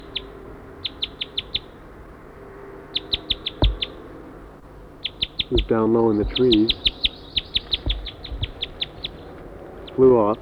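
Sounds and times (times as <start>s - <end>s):
wild bird calling: 0.0s - 10.3s
dull thump: 3.5s - 4.0s, 5.6s - 6.9s, 7.6s - 9.1s
speech: 5.5s - 6.9s, 10.0s - 10.3s.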